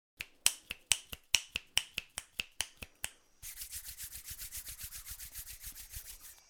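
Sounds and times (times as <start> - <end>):
finger snaps imitating rain: 0.2 - 3.2
hands rubbed together imitating rain: 0.7 - 6.4.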